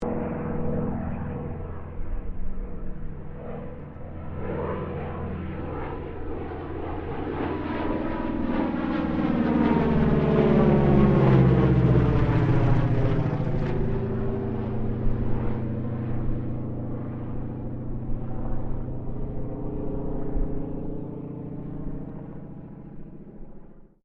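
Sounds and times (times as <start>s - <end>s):
CAC CA-25 Winjeel WW2 era Australian training aircraft passing: 0.0s - 24.0s.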